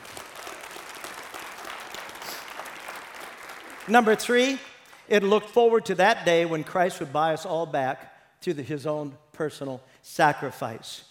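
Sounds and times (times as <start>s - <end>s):
audience clapping: 0.0s - 5.3s
speech: 3.9s - 11.0s.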